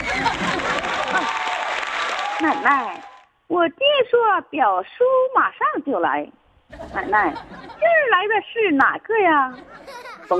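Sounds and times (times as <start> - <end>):
laughter: 0.0 - 1.5, 6.7 - 8.1, 9.5 - 10.3
audience applause: 0.0 - 3.3
speech: 2.4 - 10.3.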